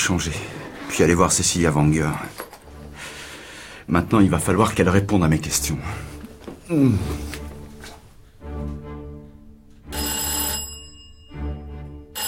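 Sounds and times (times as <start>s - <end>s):
speech: 0.0s - 2.4s, 3.9s - 6.1s, 6.7s - 7.3s
electronic doorbell ringing: 9.9s - 12.2s.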